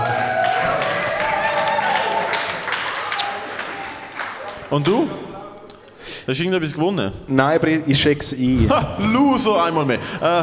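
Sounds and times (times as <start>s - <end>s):
crowd short applause: 0.0s - 5.0s
speech: 4.7s - 5.2s, 6.3s - 10.4s.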